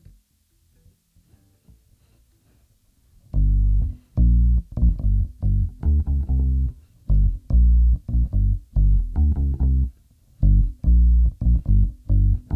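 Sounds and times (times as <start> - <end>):
bass: 3.3 - 12.5.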